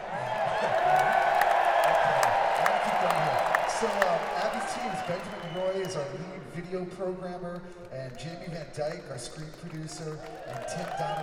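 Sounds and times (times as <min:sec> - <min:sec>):
audience cheering: 0:00.0 - 0:06.5, 0:09.3 - 0:11.2
speech: 0:05.9 - 0:11.2.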